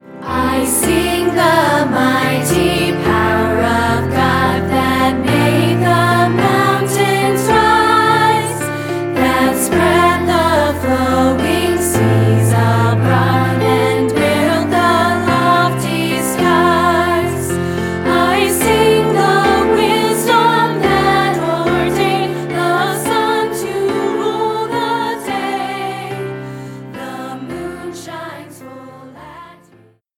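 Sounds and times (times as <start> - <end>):
piano: 0.0 - 30.0.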